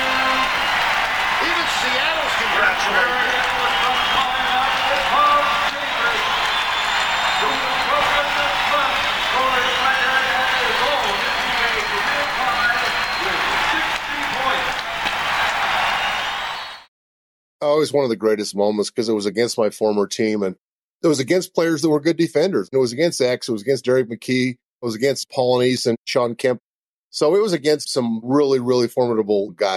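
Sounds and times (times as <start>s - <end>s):
basketball arena crowd applauding and cheering a player who scored 60 points: 0.0s - 16.9s
speech: 1.8s - 4.2s, 17.8s - 29.7s.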